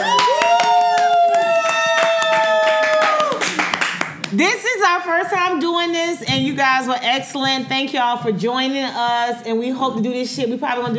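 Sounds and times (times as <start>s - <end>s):
studio audience applause: 0.0s - 4.5s
speech: 4.3s - 10.9s.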